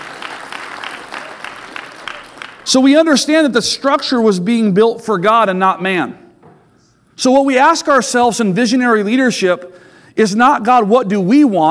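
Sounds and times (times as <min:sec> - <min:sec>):
audience applauding: 0:00.0 - 0:02.8
speech: 0:02.7 - 0:06.2, 0:07.2 - 0:11.6.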